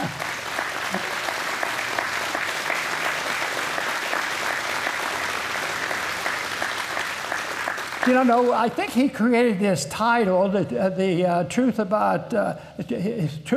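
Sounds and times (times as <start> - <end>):
audience applause: 0.0 - 9.0
speech: 8.1 - 13.5.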